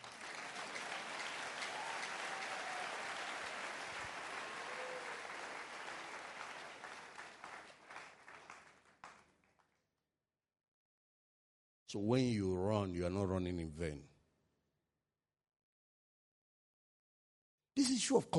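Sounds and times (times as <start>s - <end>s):
audience clapping: 0.0s - 9.8s
speech: 11.9s - 14.1s, 18.1s - 18.3s.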